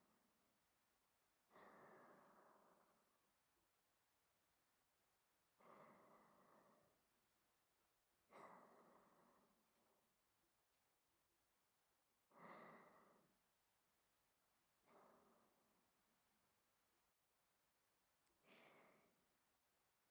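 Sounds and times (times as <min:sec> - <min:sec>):
person breathing in sleep: 0:01.5 - 0:03.2, 0:05.6 - 0:07.0, 0:08.3 - 0:09.9, 0:12.3 - 0:13.4, 0:14.8 - 0:15.8, 0:18.4 - 0:19.3.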